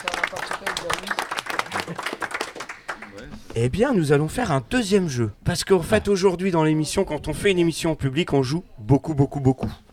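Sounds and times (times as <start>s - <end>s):
audience applause: 0.0s - 3.2s
speech: 3.6s - 9.8s.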